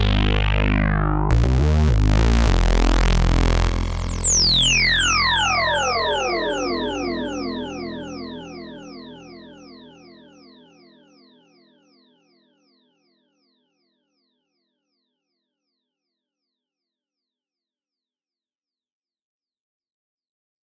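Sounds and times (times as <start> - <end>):
blown out MOOG MAVIS synthesizer with Roland RE 301 chorus echo: 0.0 - 10.8.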